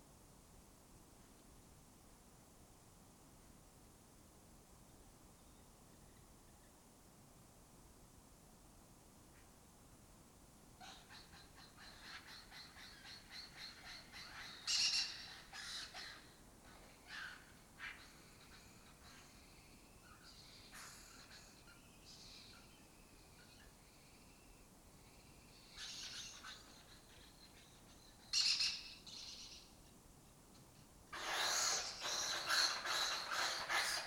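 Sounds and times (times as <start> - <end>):
lesser kestrels calling: 10.8 - 30.0, 31.2 - 34.0.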